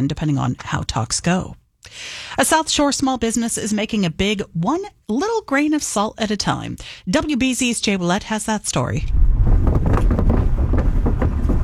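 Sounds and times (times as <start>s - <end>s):
speech: 0.0s - 9.4s
car driving over the shifting wooden planks of Old Powder Point Bridge: 9.3s - 11.6s
bridge boards clunking under the wheels: 9.6s - 11.6s.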